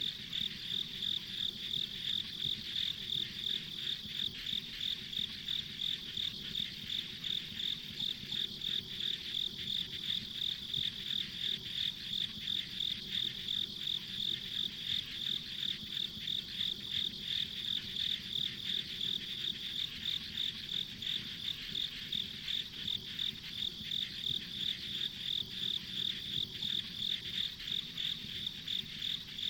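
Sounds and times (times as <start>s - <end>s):
insects chirping: 0.0s - 29.4s.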